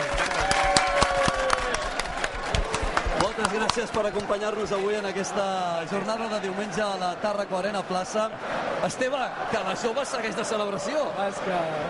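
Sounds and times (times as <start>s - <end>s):
audience applause: 0.0s - 6.8s
speech: 3.5s - 11.8s.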